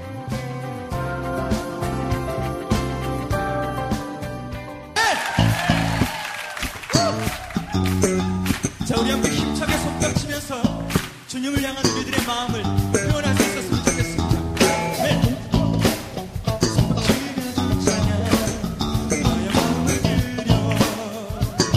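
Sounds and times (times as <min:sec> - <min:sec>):
upbeat music: 0:00.0 - 0:21.7
rhythmic clapping to the beat: 0:05.0 - 0:21.7.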